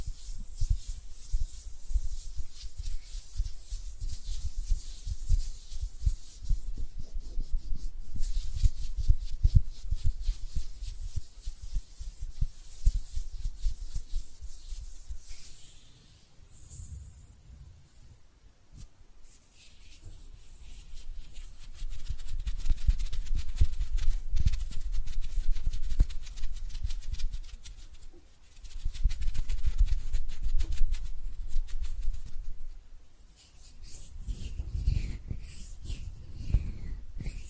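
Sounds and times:
hands rubbing, brushing and tapping: 0.0s - 15.8s, 18.7s - 32.7s, 33.3s - 37.4s.

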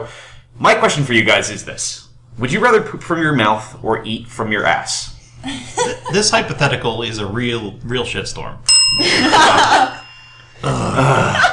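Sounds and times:
speech: 0.0s - 10.0s, 10.6s - 11.5s
laughter: 5.4s - 6.2s, 9.0s - 10.0s
people groaning in disgust: 10.6s - 11.5s.

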